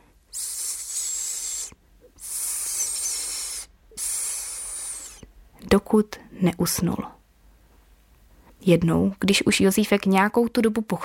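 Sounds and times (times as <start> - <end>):
quiet hissing: 0.0 - 8.6
speech: 5.7 - 7.2, 8.7 - 11.0.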